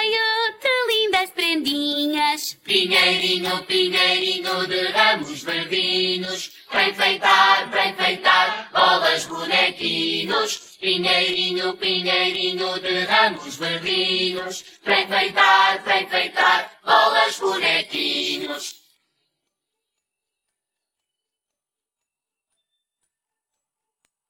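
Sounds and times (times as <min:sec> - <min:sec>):
person singing: 0:00.1 - 0:18.7.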